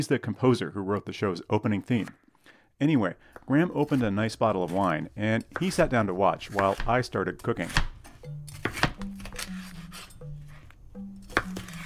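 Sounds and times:
speech: 0.0 - 7.9
chopping a green bell pepper: 3.3 - 11.8.

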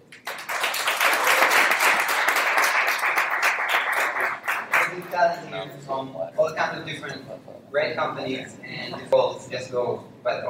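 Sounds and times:
audience applause for panelists: 0.2 - 5.1
speech: 5.2 - 10.4.

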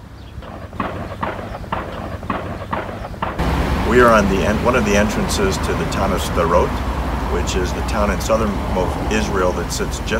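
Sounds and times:
M16 rifle gunfire: 0.4 - 3.4
speech: 3.9 - 10.1.

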